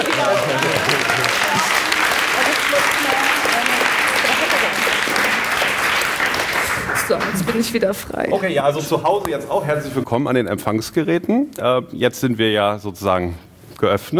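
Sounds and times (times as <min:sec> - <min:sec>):
audience applause: 0:00.0 - 0:07.9
speech: 0:07.6 - 0:14.1.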